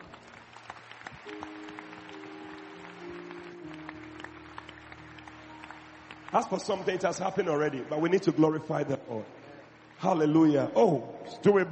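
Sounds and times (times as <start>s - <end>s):
crowd clapping: 0.0s - 10.7s
sustained low keyboard chords: 0.0s - 11.7s
speech: 6.3s - 9.4s, 10.0s - 11.7s.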